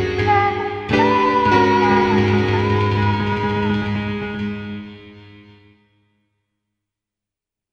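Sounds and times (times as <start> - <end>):
jazz version of a song: 0.1 - 5.1.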